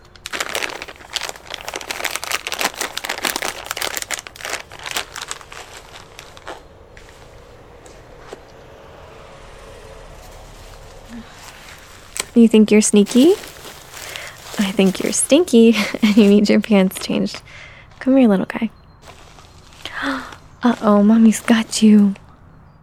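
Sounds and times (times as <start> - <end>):
plastic packaging crinkling: 0.0 - 8.0, 10.2 - 22.4
low hum: 0.0 - 22.8
speech: 12.4 - 13.5, 14.8 - 18.8, 20.6 - 22.2.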